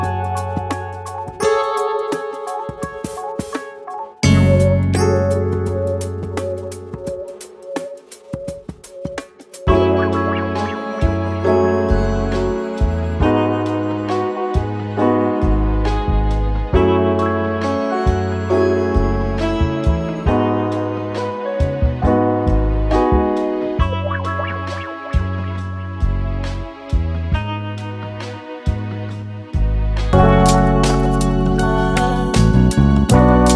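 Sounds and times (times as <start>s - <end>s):
vintage soul and R&B music: 0.0s - 33.5s.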